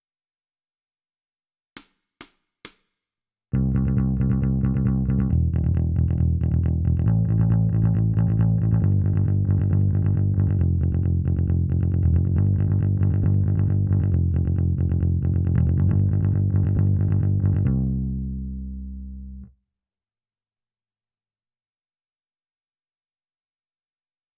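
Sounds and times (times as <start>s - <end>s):
bass: 3.5s - 19.6s.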